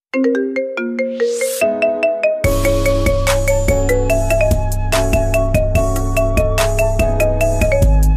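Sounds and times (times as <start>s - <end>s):
ringtone: 0.2s - 8.1s.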